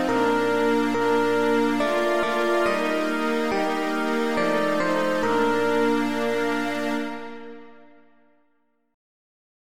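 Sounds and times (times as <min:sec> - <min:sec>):
hymn played on several instruments: 0:00.0 - 0:07.5.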